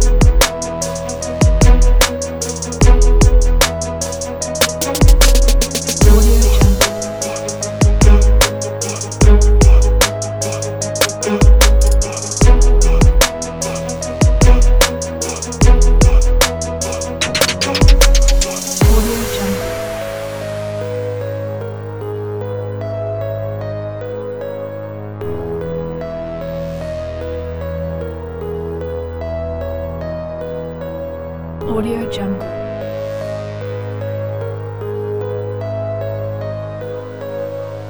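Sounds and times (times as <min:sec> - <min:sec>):
gangsta hip hop music: 0:00.0 - 0:21.5.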